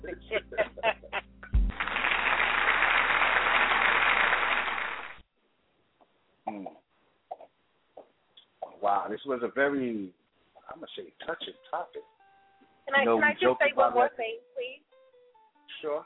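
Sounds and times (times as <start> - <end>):
laughter: 0.0 - 1.3
audience applause: 1.6 - 5.2
speech: 9.1 - 10.2, 10.8 - 12.1, 12.9 - 14.5, 15.8 - 16.0.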